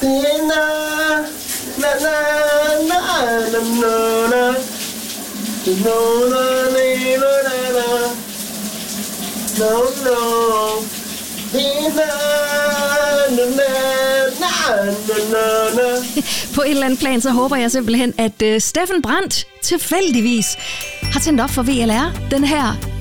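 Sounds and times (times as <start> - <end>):
man singing: 0.0 - 4.7, 5.7 - 8.2, 9.6 - 10.9, 11.5 - 16.4
shower running: 0.0 - 22.7
speech: 5.7 - 8.2, 9.6 - 10.9, 14.7 - 22.9.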